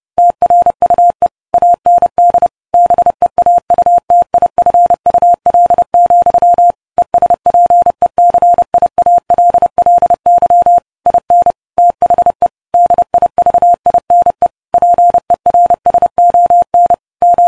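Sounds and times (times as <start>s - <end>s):
morse code: 0.2s - 17.4s.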